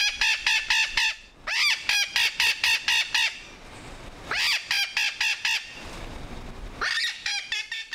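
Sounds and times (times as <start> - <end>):
captive Puerto Rican parrots calling: 0.0 - 3.4, 4.3 - 5.7, 6.8 - 7.9.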